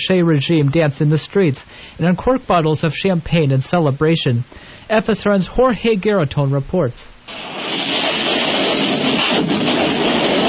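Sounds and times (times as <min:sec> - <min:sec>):
speech: 0:00.0 - 0:07.5
jet fighters firing rockets into Chile's presidential palace: 0:07.3 - 0:10.4.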